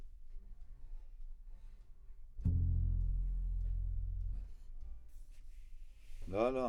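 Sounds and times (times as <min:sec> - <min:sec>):
synth bass: 0:02.5 - 0:05.0.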